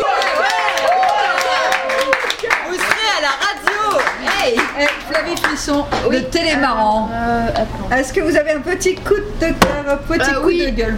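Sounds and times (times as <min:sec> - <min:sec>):
audience applause: 0:00.0 - 0:05.5
speech: 0:05.7 - 0:10.9.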